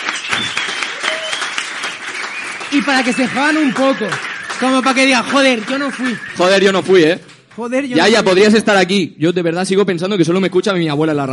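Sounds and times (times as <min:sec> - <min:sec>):
audience applause: 0:00.0 - 0:08.2
speech: 0:02.7 - 0:11.3.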